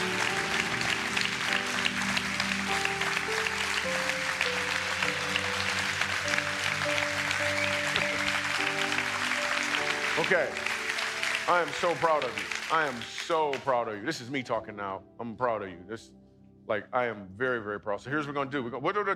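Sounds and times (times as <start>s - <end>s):
sustained organ-like tone: 0.0s - 11.7s
large crowd applause: 0.0s - 13.8s
speech: 10.3s - 10.7s, 11.5s - 19.1s.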